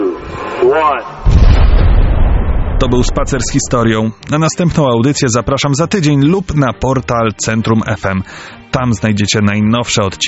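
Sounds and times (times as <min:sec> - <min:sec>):
speech: 0:00.6 - 0:01.2, 0:02.8 - 0:10.2
explosive demolition blast of a power plant chimney: 0:01.2 - 0:04.0.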